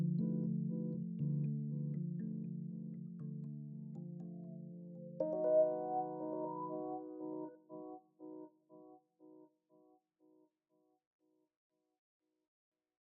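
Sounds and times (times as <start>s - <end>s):
synths and keys: 0.0s - 9.5s.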